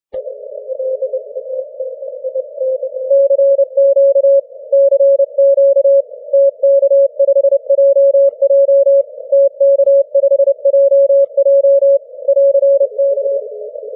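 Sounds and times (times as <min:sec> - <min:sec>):
Morse code on 6m band: 0:02.8 - 0:13.4.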